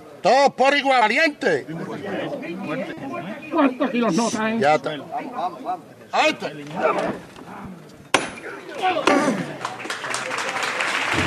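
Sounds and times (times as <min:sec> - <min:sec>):
speech: 0:00.2 - 0:07.4, 0:08.8 - 0:09.6
crowd ovation: 0:09.0 - 0:11.2.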